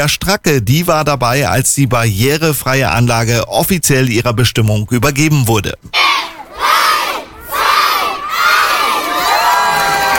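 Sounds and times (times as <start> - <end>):
speech: 0.0 - 6.7
children shouting and cheering excitedly at a playground in Oberstdorf: 5.9 - 10.1.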